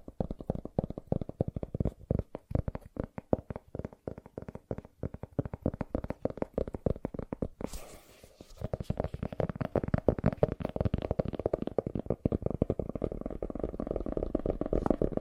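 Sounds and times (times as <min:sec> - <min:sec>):
fast tapping: 0:00.0 - 0:07.7, 0:08.5 - 0:15.1
brief hissing scrape: 0:07.6 - 0:08.6.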